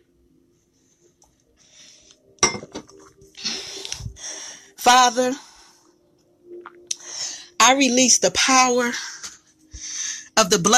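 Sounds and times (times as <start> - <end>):
teacup clinking while taking a sip of tea: 2.4 - 3.1
speech: 4.8 - 5.5, 7.7 - 9.1, 10.4 - 10.7.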